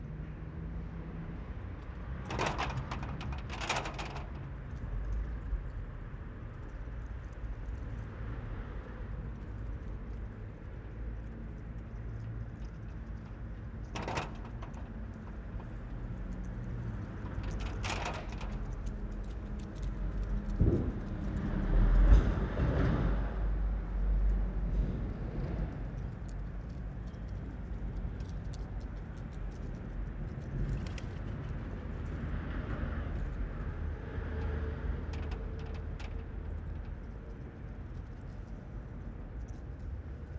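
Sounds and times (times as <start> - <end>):
wind in a town parking space: 0.0 - 40.3
gate moving in wind: 2.1 - 5.2, 13.2 - 19.1, 30.9 - 38.1.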